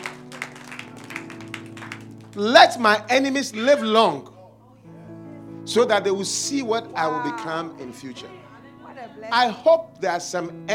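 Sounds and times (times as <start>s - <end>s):
audience clapping: 0.0s - 3.0s
speech: 2.4s - 4.3s, 5.7s - 8.5s, 9.2s - 10.7s.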